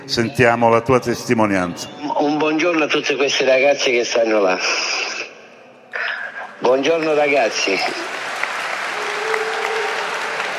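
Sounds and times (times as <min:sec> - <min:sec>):
speech: 0:00.1 - 0:05.1, 0:06.6 - 0:08.2
applause: 0:06.8 - 0:10.5.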